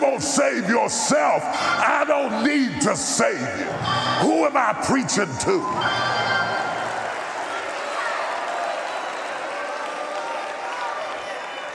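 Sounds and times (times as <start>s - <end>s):
speech: 0.2s - 6.4s
audience applauding: 4.9s - 11.7s.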